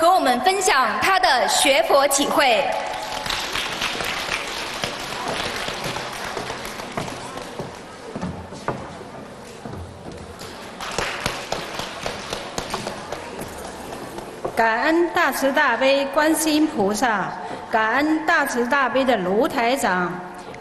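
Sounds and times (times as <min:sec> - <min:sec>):
speech: 0:00.2 - 0:03.0, 0:14.6 - 0:20.3
warm applause from audience: 0:02.8 - 0:07.7, 0:10.4 - 0:13.9.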